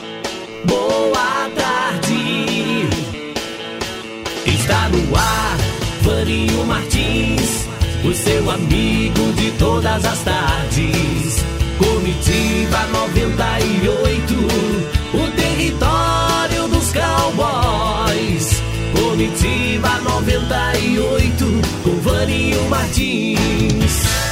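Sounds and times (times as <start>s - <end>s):
radio jingle: 0.2s - 24.2s.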